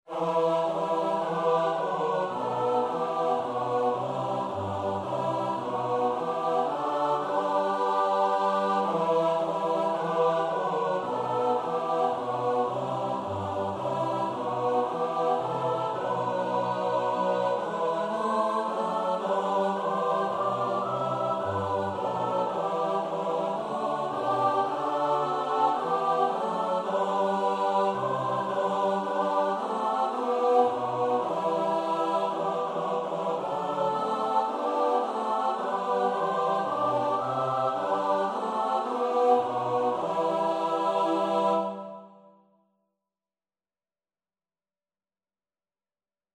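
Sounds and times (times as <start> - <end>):
SATB four-part choir singing: 0.1 - 42.2.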